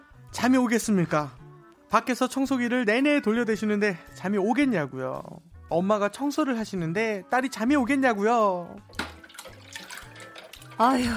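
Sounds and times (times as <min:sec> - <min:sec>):
speech: 0:00.4 - 0:09.0, 0:10.8 - 0:11.1
running water while washing dishes: 0:08.8 - 0:11.1.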